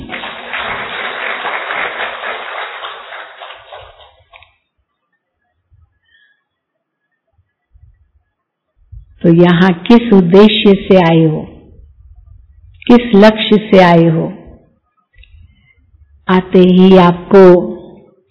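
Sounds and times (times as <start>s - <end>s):
audience clapping: 0.0s - 4.6s
soft low thumps: 7.7s - 8.1s, 8.8s - 9.2s, 11.6s - 12.8s
speech: 9.2s - 11.5s, 12.8s - 14.4s, 16.3s - 17.8s.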